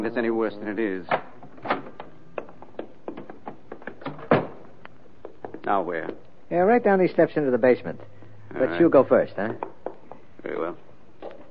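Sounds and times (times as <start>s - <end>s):
speech: 0.0s - 1.4s, 5.7s - 9.7s
door opening and shutting with latch clicks and thud: 1.0s - 4.7s.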